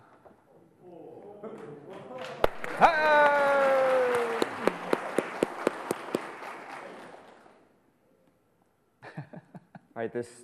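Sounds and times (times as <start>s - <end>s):
round of applause: 1.9s - 7.7s
sharp claps: 2.2s - 7.6s
person cheering: 2.7s - 4.8s
speech: 10.0s - 10.4s.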